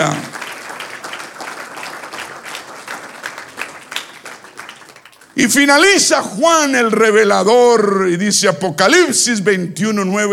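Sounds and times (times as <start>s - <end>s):
speech: 0.0s - 0.3s, 5.4s - 10.3s
audience applause: 0.0s - 5.4s.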